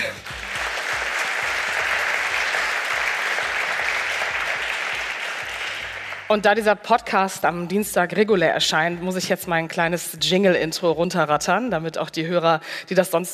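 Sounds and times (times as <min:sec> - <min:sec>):
audience applause: 0:00.0 - 0:06.4
speech: 0:06.3 - 0:13.3.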